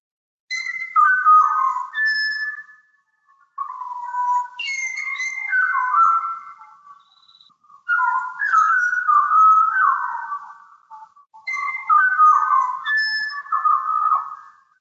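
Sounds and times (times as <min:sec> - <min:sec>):
Pied Butcherbird singing: 0:00.5 - 0:14.7.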